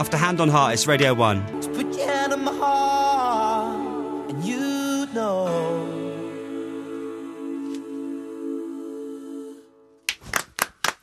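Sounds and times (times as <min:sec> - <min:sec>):
speech: 0:00.0 - 0:01.8
sustained musical tone: 0:00.0 - 0:10.0
two people clapping: 0:10.1 - 0:11.0.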